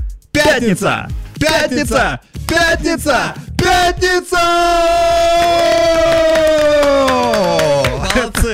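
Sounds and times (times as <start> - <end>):
speech: 0.6 - 8.5
sharp hand claps: 1.5 - 2.8, 5.3 - 8.5
sustained cheering cry: 4.3 - 8.1.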